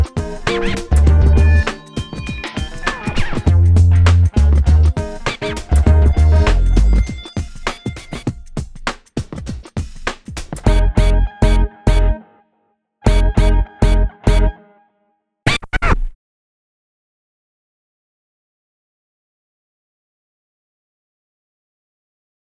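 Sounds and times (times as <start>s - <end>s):
spy groove music: 0.0s - 12.2s, 13.1s - 14.6s.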